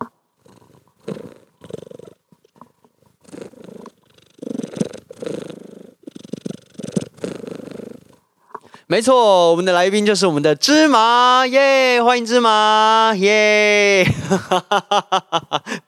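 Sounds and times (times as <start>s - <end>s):
cat purring: 0.0s - 8.3s
speech: 8.9s - 15.3s.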